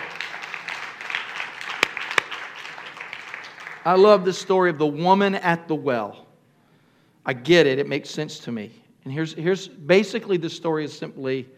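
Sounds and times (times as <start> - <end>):
audience clapping hands: 0.0 - 4.5
speech: 3.8 - 6.2, 7.2 - 11.5.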